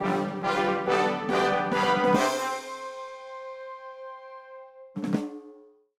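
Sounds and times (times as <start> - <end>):
show jingle: 0.0 - 3.5.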